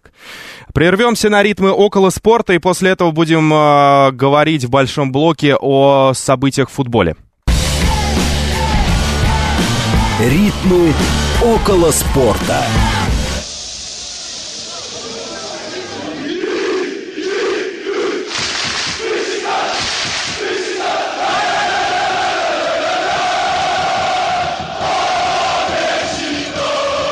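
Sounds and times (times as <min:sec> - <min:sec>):
speech: 0:00.8 - 0:07.2, 0:10.2 - 0:13.1
football fans roaring in a stadium: 0:07.5 - 0:13.5, 0:14.2 - 0:27.0
football fans chanting: 0:07.6 - 0:13.4, 0:14.1 - 0:27.0.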